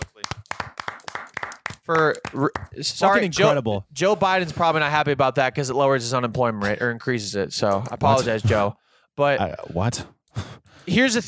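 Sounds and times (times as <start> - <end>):
hand clapping: 0.0 - 3.0
speech: 1.9 - 11.2.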